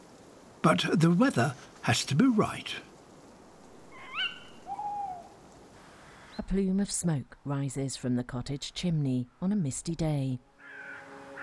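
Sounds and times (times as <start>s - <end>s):
speech: 0.6s - 2.9s, 6.5s - 10.5s
tawny owl hooting in a garden: 3.9s - 5.4s.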